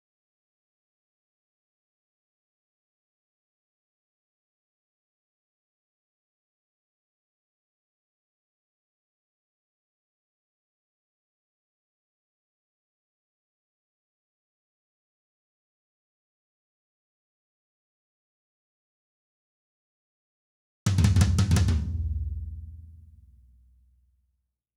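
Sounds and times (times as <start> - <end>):
tom drums: 20.9 - 23.3.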